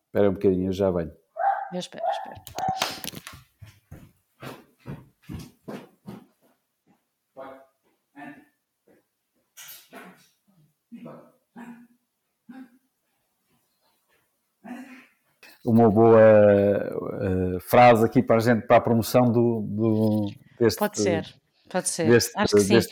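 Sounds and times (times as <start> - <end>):
speech: 0.1 - 3.2, 15.8 - 22.9
dog barking agitatedly: 1.4 - 3.0.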